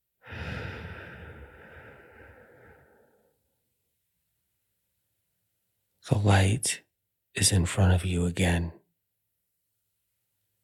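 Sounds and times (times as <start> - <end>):
deep breath released during guided meditation: 0.2 - 3.4
speech: 6.1 - 6.8, 7.4 - 8.8.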